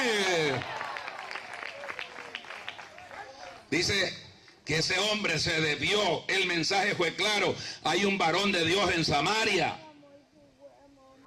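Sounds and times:
audience applause: 0.0s - 3.7s
speech: 3.7s - 9.8s.

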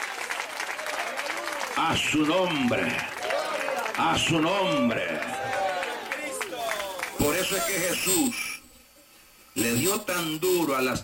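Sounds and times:
audience applauding: 0.0s - 7.7s
speech: 1.8s - 3.2s, 4.0s - 5.6s, 7.2s - 8.5s, 9.6s - 11.0s.

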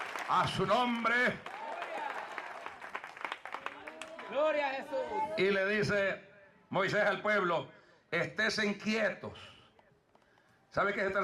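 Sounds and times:
church audience applause: 0.0s - 4.6s
speech: 0.3s - 1.5s, 4.3s - 9.6s, 10.7s - 11.2s.

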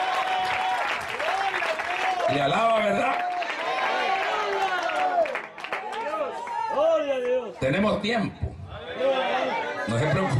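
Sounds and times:
church audience applause: 0.0s - 7.4s
speech: 2.3s - 3.3s, 7.6s - 10.3s.

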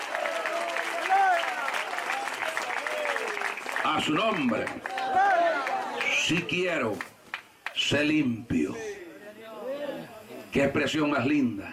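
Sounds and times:
audience applause: 0.0s - 7.8s
speech: 3.8s - 5.0s, 6.3s - 7.1s, 7.8s - 8.9s, 10.5s - 11.7s.

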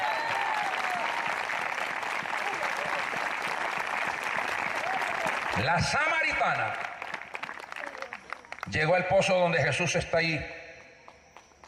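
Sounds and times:
audience applause: 0.0s - 8.8s
speech: 5.6s - 6.9s, 8.7s - 10.6s.

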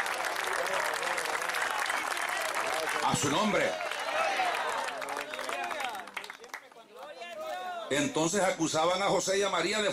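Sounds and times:
audience applause: 0.0s - 7.4s
speech: 3.1s - 3.8s, 7.9s - 9.9s.

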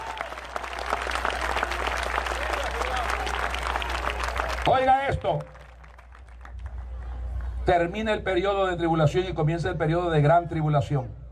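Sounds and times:
audience applause: 0.0s - 7.3s
speech: 4.7s - 5.6s, 7.7s - 11.2s.

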